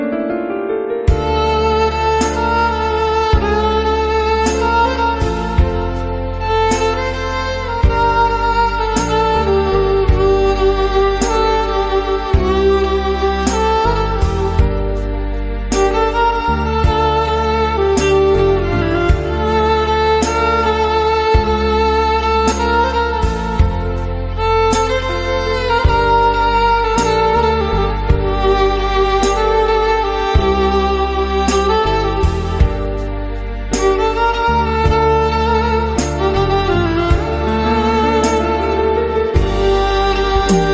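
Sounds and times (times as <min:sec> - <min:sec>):
violin: 0:00.2 - 0:40.7.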